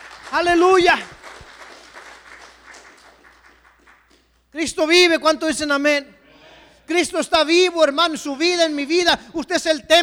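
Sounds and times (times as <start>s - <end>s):
audience applause: 0.0s - 4.2s
speech: 0.3s - 1.2s, 4.6s - 6.2s, 6.9s - 10.0s.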